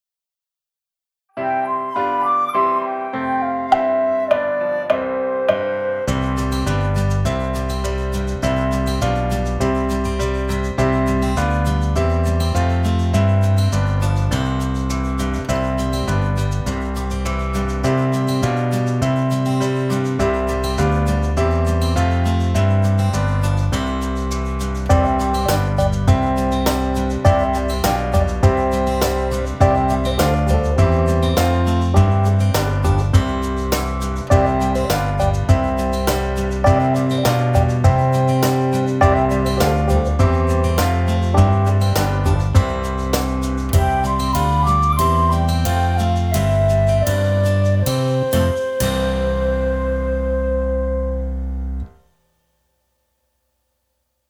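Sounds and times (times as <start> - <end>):
instrumental music: 1.3 - 52.1.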